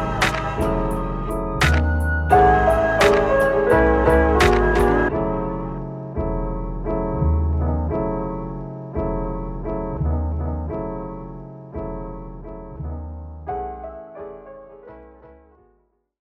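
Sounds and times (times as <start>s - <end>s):
jazz in E major: 0.0s - 15.4s.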